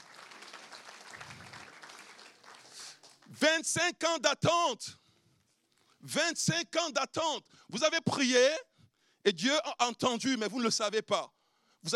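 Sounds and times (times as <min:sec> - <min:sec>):
audience applause: 0:00.0 - 0:03.3
speech: 0:03.4 - 0:05.0, 0:06.0 - 0:11.9.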